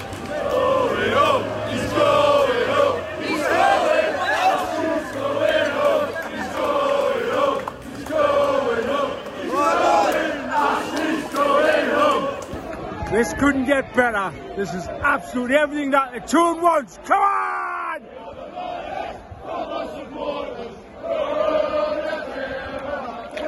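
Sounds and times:
football fans chanting and singing outside a stadium: 0.0 - 13.0, 17.8 - 23.4
speech: 13.8 - 17.2.

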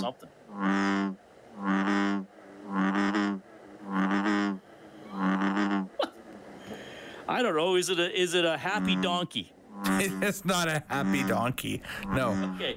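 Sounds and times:
speech: 0.0 - 1.9, 7.4 - 12.7
buzzy low-pitched amphibian croaks: 0.0 - 6.1, 8.6 - 12.7.

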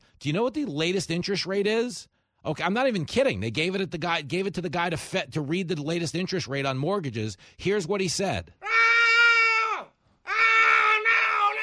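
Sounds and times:
speech: 0.2 - 8.7
man screaming: 8.6 - 11.6.

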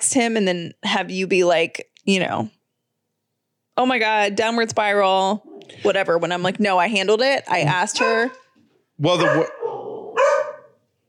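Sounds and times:
speech: 0.1 - 2.6, 3.8 - 8.4, 9.0 - 9.6
dog barking while walking past a house across the street: 8.0 - 8.5, 9.1 - 10.8.

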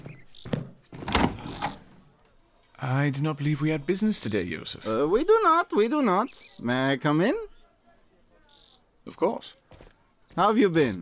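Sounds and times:
door being opened with thumps and clunks: 1.0 - 2.0
speech: 2.8 - 7.5, 9.0 - 9.6, 10.4 - 10.9.

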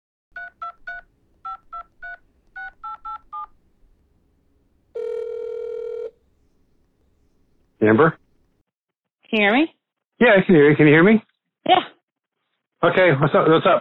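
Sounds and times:
telephone dialing a call: 0.4 - 4.1, 4.9 - 6.2
speech: 7.8 - 8.2, 9.3 - 11.9, 12.8 - 13.7.

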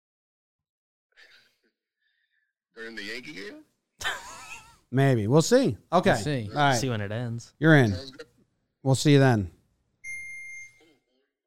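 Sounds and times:
speech: 2.8 - 4.2, 4.9 - 9.6
sharp phone ping: 10.0 - 10.8.

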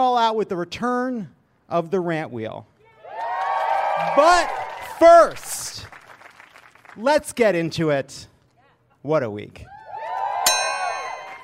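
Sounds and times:
speech: 0.0 - 2.7, 4.0 - 5.9, 7.0 - 8.3, 9.0 - 9.7
bell ringing: 10.5 - 11.4.

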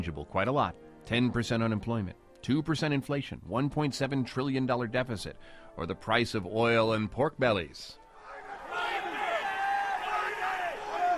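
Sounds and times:
speech: 0.0 - 8.0
traders shouting in commodity exchange trading pit: 8.3 - 11.1.

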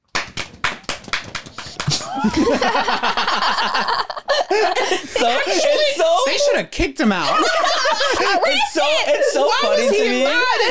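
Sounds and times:
hand clapping: 0.0 - 2.7
laughter: 1.4 - 10.6
speech: 2.2 - 10.6.

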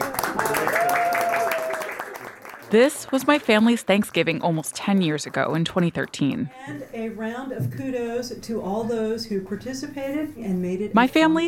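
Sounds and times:
crowd applauding: 0.0 - 6.5
speech: 2.7 - 11.4.

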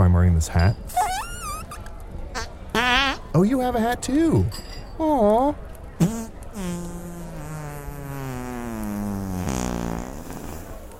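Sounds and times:
speech: 0.2 - 1.3, 3.4 - 7.0
fart: 0.9 - 1.8, 6.0 - 10.9.

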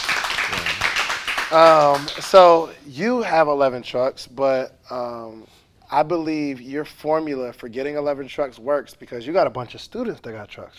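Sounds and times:
round of applause: 0.0 - 2.6
faint voice murmuring: 0.5 - 1.0
speech: 1.5 - 10.7.

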